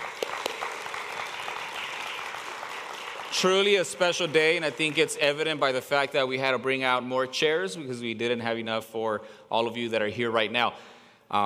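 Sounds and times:
crowd applauding: 0:00.0 - 0:05.6
speech: 0:03.3 - 0:11.4.

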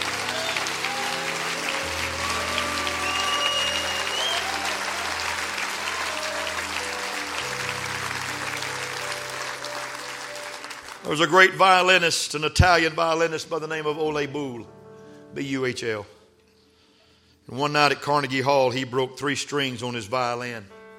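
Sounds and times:
audience applause: 0:00.0 - 0:11.5
speech: 0:11.1 - 0:14.8, 0:15.4 - 0:16.2, 0:17.5 - 0:20.8.

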